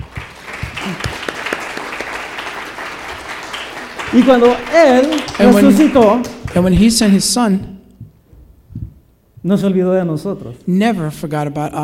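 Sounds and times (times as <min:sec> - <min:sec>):
audience applauding: 0:00.0 - 0:07.1
speech: 0:00.9 - 0:01.1, 0:04.1 - 0:07.8, 0:09.4 - 0:11.8.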